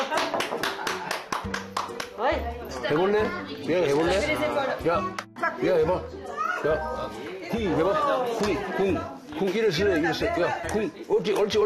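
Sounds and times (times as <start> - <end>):
hand clapping: 0.0 - 2.2, 10.6 - 11.6
speech: 2.3 - 11.6.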